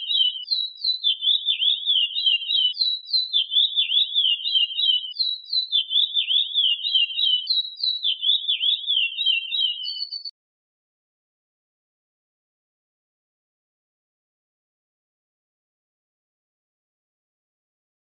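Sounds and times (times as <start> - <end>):
curió bird singing: 0.0 - 10.3.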